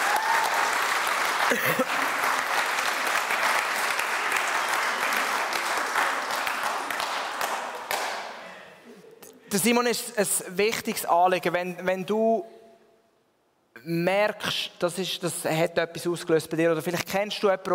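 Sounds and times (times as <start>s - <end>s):
audience applause: 0.0s - 8.4s
speech: 1.5s - 2.0s, 9.6s - 12.6s, 13.8s - 17.7s.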